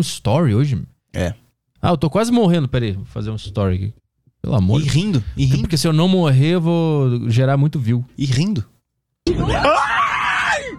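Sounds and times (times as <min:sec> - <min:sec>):
speech: 0:00.0 - 0:08.7, 0:09.3 - 0:09.8
person screaming: 0:09.3 - 0:10.7.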